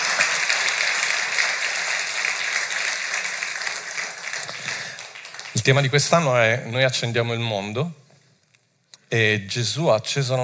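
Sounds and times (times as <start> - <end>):
audience applause: 0.0 - 6.2
speech: 5.6 - 8.0, 9.1 - 10.4.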